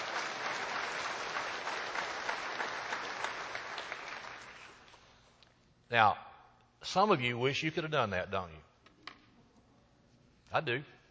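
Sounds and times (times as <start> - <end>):
audience clap offering: 0.0 - 5.0
speech: 5.9 - 8.7, 10.5 - 11.0.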